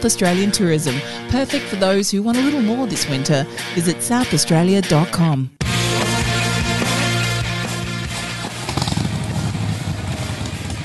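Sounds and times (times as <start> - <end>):
speech: 0.0 - 5.6
Harley-Davidson motorcycle engine idling and revving: 5.7 - 10.8.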